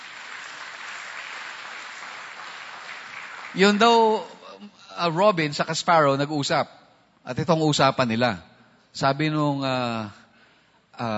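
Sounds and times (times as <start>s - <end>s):
church congregation clapping in praise during a service: 0.0s - 4.4s
speech: 3.5s - 10.2s, 11.0s - 11.1s.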